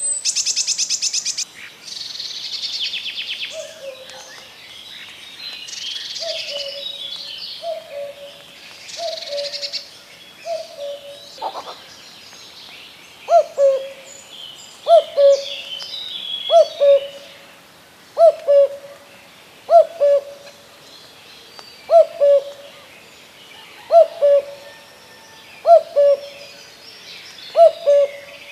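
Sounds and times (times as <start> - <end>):
common cuckoo giving two-note cu-coo calls: 3.4 - 4.5, 5.7 - 11.9, 13.3 - 14.2, 14.8 - 17.4, 18.2 - 19.1, 19.7 - 20.6, 21.8 - 22.9, 23.6 - 26.7, 27.5 - 28.5.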